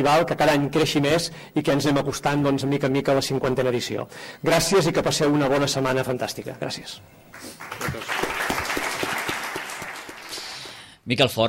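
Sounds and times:
speech: 0.0s - 8.4s, 11.1s - 11.4s
applause after a speech: 7.3s - 11.0s.

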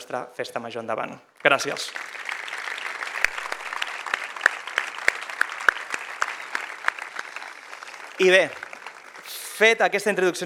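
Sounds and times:
speech: 0.1s - 2.2s, 8.2s - 8.7s, 9.6s - 10.4s
audience applause: 1.6s - 9.6s.

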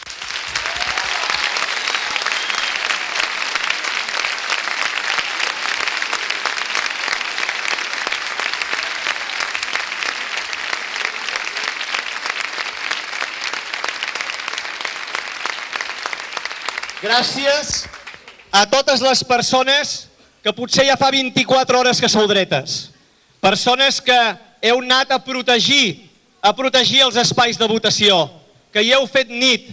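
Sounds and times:
crowd applause: 0.0s - 18.5s
speech: 17.0s - 29.7s.

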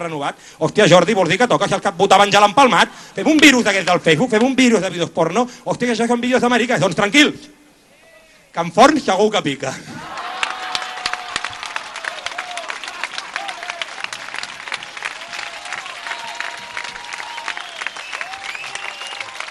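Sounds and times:
speech: 0.0s - 7.6s, 8.5s - 10.2s
audience applause: 10.0s - 19.4s
faint whistles or cheers: 10.0s - 19.4s.

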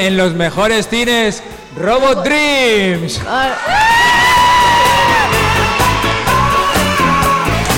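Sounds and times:
speech: 0.0s - 4.0s
crowd applause: 3.5s - 7.7s
high whooping yells: 3.5s - 7.7s.

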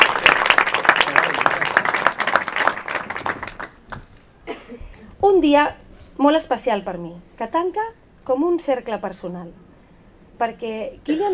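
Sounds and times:
crowd applause: 0.0s - 4.1s
speech: 5.4s - 9.6s, 10.4s - 11.3s.

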